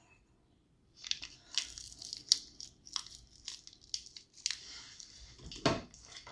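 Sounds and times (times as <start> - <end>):
hardened instant coffee granules being crushed: 1.0 - 5.2.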